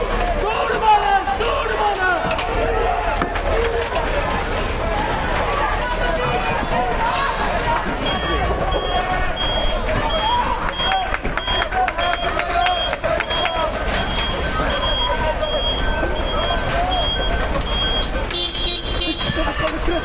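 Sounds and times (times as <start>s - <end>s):
bulldozer engine rumbling: 0.0s - 20.0s
crowd shouting and talking: 0.0s - 20.0s
laughter: 1.3s - 20.0s
bulldozer reversing beeps: 6.3s - 20.0s.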